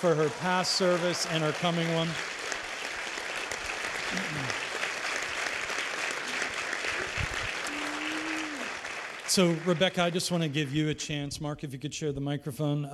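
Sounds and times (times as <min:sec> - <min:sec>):
speech: 0:00.0 - 0:02.4, 0:04.1 - 0:04.6, 0:09.3 - 0:12.9
church audience applause: 0:00.0 - 0:10.8.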